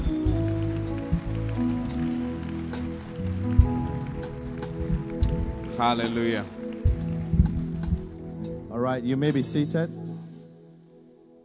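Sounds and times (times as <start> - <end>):
audience clapping: 0.0 - 8.7
speech: 5.8 - 6.6, 8.8 - 10.0.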